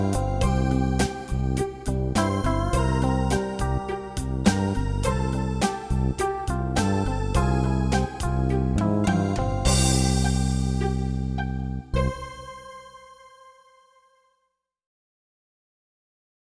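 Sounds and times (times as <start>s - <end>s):
staccato improvised music: 0.0s - 11.2s.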